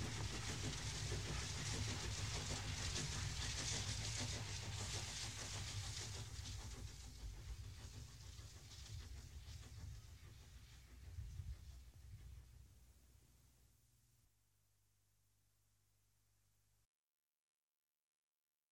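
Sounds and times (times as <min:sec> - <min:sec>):
train passing: 0:00.0 - 0:12.6.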